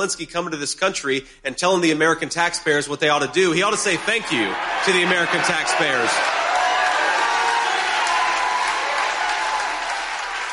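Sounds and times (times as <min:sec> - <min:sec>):
speech: 0:00.0 - 0:06.4
large crowd clapping at political rally: 0:04.6 - 0:10.5.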